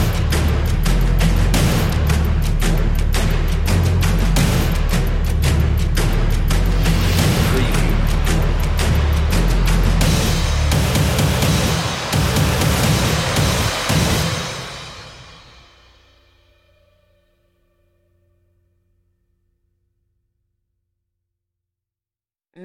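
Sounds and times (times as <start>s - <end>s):
bass drums: 0.0s - 15.3s.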